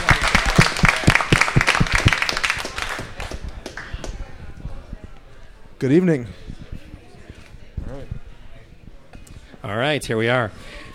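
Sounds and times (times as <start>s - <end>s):
audience round of applause: 0.0s - 3.9s
speech: 5.8s - 6.4s, 9.7s - 10.8s.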